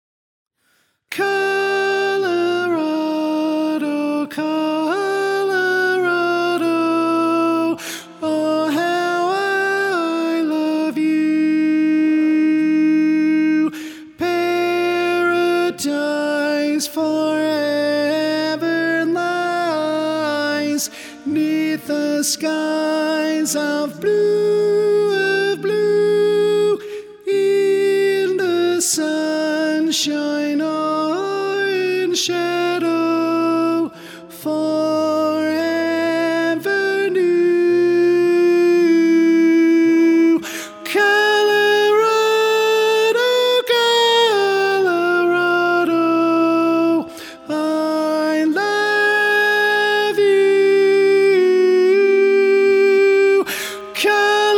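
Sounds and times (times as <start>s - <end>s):
tenor singing: 1.1s - 54.5s.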